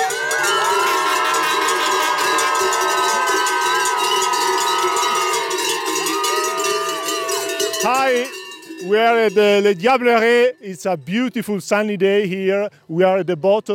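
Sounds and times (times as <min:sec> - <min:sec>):
noisy French fans' crowd din at an alpine skiing course: 0:00.0 - 0:08.4
cowbells clanging at an alpine skiing course: 0:00.0 - 0:11.6
speech: 0:07.8 - 0:13.7.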